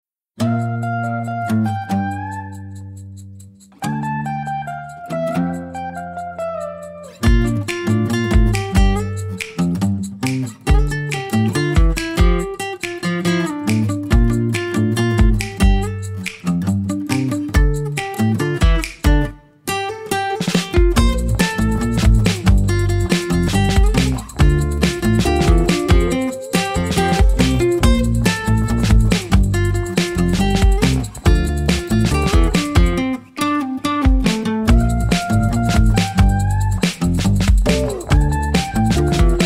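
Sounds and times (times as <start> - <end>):
music: 0.4 - 39.4.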